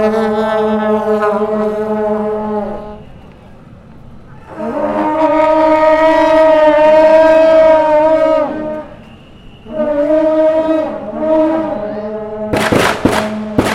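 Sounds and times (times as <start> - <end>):
blaring horn-like tones at the Qingshan Temple festival in Wanhua, Taipei: 0.0 - 12.6
firecracker-like sharp cracks: 12.6 - 13.7.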